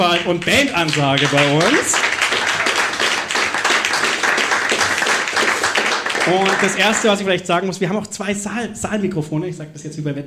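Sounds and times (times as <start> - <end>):
speech: 0.0 - 2.2, 6.3 - 10.2
live audience clapping: 0.0 - 7.4.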